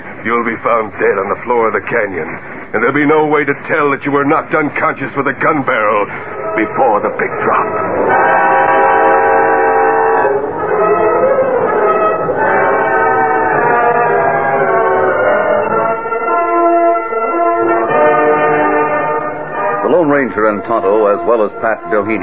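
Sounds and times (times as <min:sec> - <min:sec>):
distant locomotive: 0:00.0 - 0:22.2
speech: 0:00.2 - 0:08.6, 0:20.0 - 0:22.2
train horn: 0:05.7 - 0:22.2.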